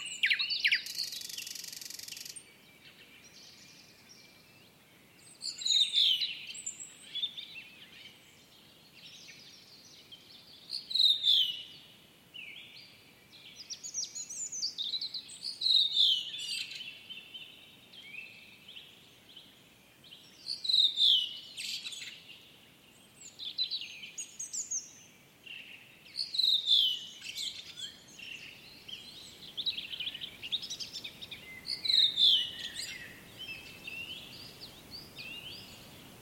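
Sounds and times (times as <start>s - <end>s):
bright varied woodland bird singing phrases: 0.0s - 36.1s.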